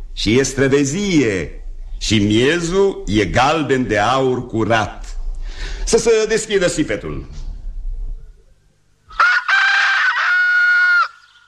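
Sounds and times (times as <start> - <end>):
speech: 0.2 - 5.0, 5.9 - 7.4
rooster crowing: 9.1 - 11.4.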